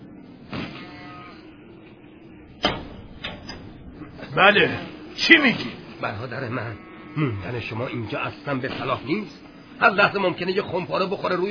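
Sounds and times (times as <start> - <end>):
house door being opened: 2.4 - 5.9
house door latch click: 2.6 - 4.0
speech: 4.4 - 11.4.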